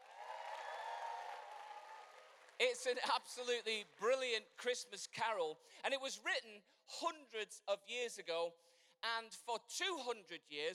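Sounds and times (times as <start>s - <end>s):
audience applause: 0.0s - 3.0s
speech: 2.6s - 10.7s.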